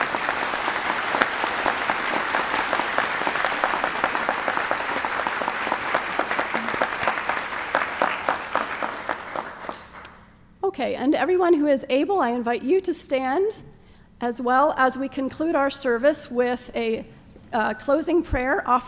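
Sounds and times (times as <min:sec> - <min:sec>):
audience applause: 0:00.0 - 0:10.1
speech: 0:10.9 - 0:18.8.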